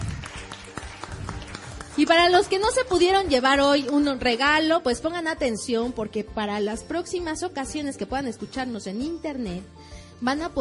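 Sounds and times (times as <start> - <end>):
audience applause: 0.0 - 2.6
speech: 2.0 - 10.6.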